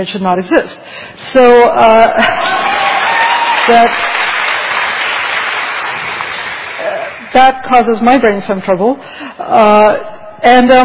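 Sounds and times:
speech: 0:00.0 - 0:02.9, 0:03.7 - 0:04.1, 0:07.4 - 0:10.8
crowd cheering and applauding at a speech: 0:02.2 - 0:07.2.

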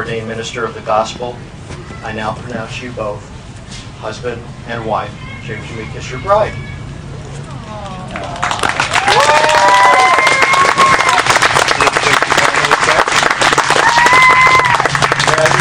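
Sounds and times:
speech: 0:00.0 - 0:03.4, 0:04.0 - 0:06.7
wedding guests cheering and whooping: 0:07.4 - 0:15.5
wedding guests applauding: 0:07.8 - 0:15.5.

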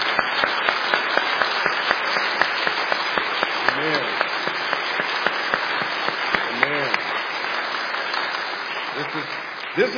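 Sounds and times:
audience hand clapping: 0:00.0 - 0:09.9
speech: 0:09.8 - 0:09.9.

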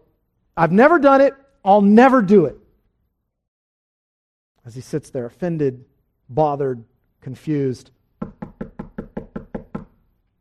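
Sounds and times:
speech: 0:00.6 - 0:02.6, 0:04.7 - 0:08.4
knocking on a door: 0:08.2 - 0:10.0.

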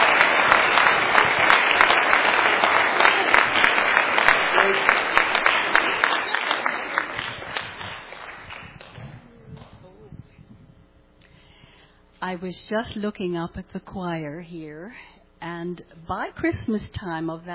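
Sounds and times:
audience applause: 0:00.0 - 0:09.2
speech: 0:12.3 - 0:17.5.

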